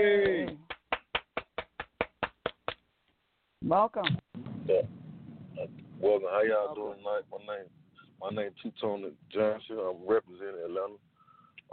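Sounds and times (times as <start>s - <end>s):
hand claps: 0.1s - 2.8s
speech: 3.6s - 5.0s, 5.6s - 11.1s.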